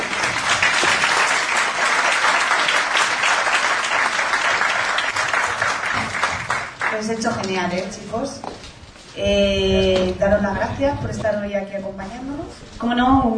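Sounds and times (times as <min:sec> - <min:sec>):
audience applause: 0:00.0 - 0:07.1
speech: 0:07.0 - 0:08.6, 0:09.2 - 0:13.3.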